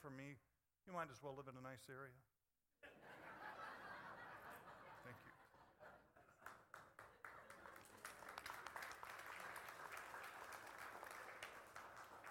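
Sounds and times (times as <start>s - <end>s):
speech: 0.0s - 2.3s, 5.0s - 5.4s
laughter: 2.8s - 8.0s
quiet polite applause: 5.0s - 12.2s.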